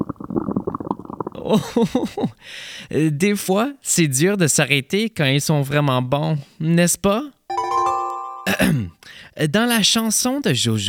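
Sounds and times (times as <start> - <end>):
stomach rumbling after eating too many biscuits: 0.0 - 1.5
speech: 1.4 - 7.4, 8.6 - 10.8.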